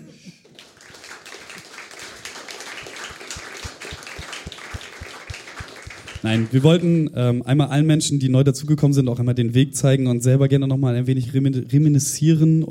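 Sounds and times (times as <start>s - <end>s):
crowd applauding: 0.4s - 6.9s
speech: 6.2s - 12.7s.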